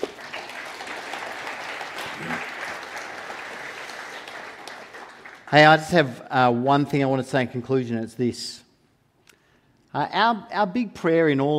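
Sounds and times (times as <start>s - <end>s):
audience clapping: 0.0s - 6.2s
speech: 5.5s - 8.6s, 10.0s - 11.5s.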